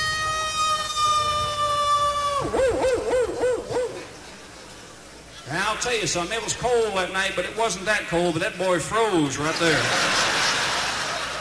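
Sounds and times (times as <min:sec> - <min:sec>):
person imitating a big Alaskan wolf's baying howl: 0:00.2 - 0:04.1
speech: 0:05.8 - 0:10.4
laughter: 0:09.4 - 0:11.3.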